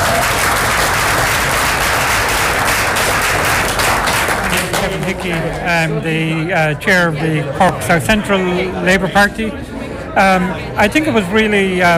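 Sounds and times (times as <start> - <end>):
room full of people applauding: 0.0 - 5.8
speech: 5.0 - 11.9.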